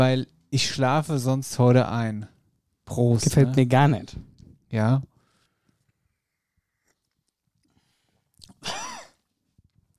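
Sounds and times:
speech: 0.0s - 2.3s, 2.9s - 5.1s
swallowing: 6.9s - 8.7s
choking cough after swallowing wrong: 8.5s - 9.3s.

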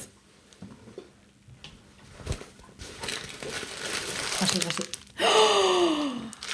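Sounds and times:
paper bakery bag rustling: 2.2s - 5.0s, 6.4s - 6.5s
speech: 4.4s - 5.6s.

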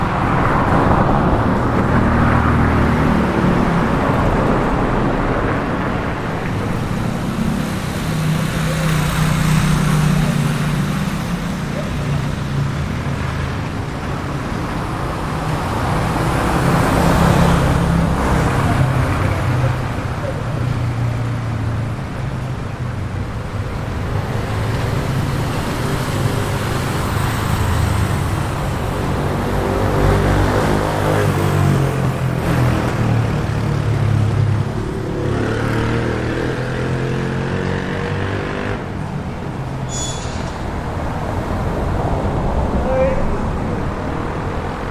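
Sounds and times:
steady traffic on a Latin American street: 0.0s - 44.9s.

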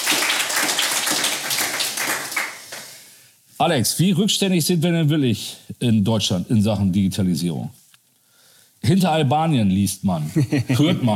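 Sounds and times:
crowd applauding: 0.0s - 2.9s
speech: 3.6s - 7.8s, 8.8s - 11.1s
laughter: 10.2s - 11.1s.

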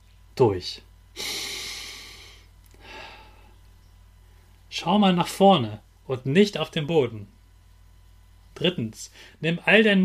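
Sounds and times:
speech: 0.4s - 1.5s, 4.8s - 7.4s, 8.6s - 10.0s
deep calm breathing at rest: 1.2s - 3.6s.

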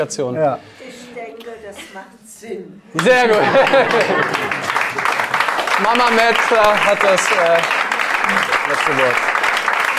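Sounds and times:
speech: 0.0s - 0.8s, 1.4s - 4.8s, 5.8s - 9.3s
group clapping: 2.9s - 9.9s
laughter: 3.0s - 7.2s.

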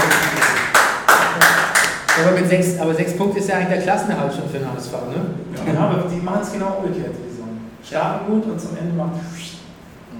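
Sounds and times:
audience applause: 0.0s - 2.2s
speech: 2.2s - 9.6s.

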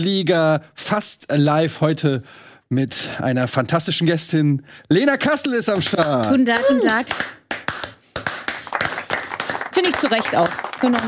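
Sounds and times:
speech: 0.0s - 7.6s, 9.8s - 11.0s
applause: 5.8s - 11.0s.

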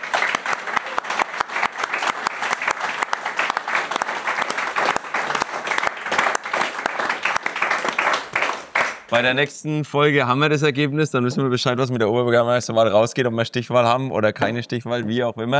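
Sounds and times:
audience applause: 0.0s - 9.3s
speech: 9.1s - 15.5s.

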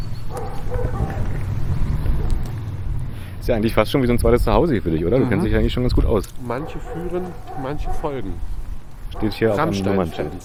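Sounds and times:
dog at the local electronics shop barking and yipping softly: 0.0s - 2.6s, 6.5s - 8.4s, 9.1s - 10.4s
speech: 3.4s - 8.6s, 9.2s - 10.4s.

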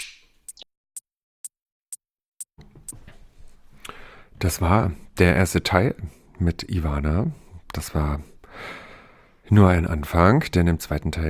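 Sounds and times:
finger snap: 0.0s - 0.6s
speech: 4.4s - 8.8s, 9.5s - 11.2s.

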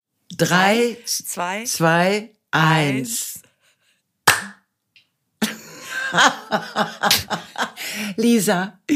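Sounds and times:
speech: 0.4s - 3.5s, 6.1s - 8.9s
hand clapping: 4.3s - 4.6s
laughter: 5.4s - 8.1s.

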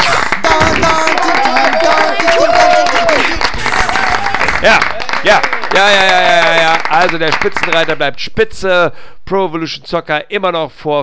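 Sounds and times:
short applause: 0.0s - 8.0s
speech: 4.6s - 11.0s.

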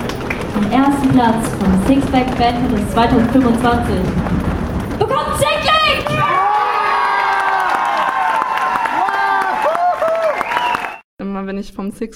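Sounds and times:
stomping: 0.0s - 8.5s
drum roll: 0.0s - 9.6s
audience applause: 0.0s - 11.0s
speech: 0.6s - 4.5s, 11.4s - 12.1s.

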